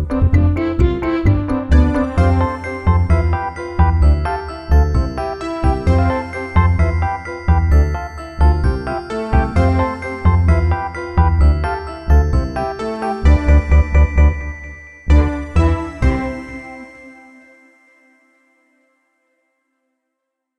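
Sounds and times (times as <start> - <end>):
upbeat music without drums: 0.0 - 17.3.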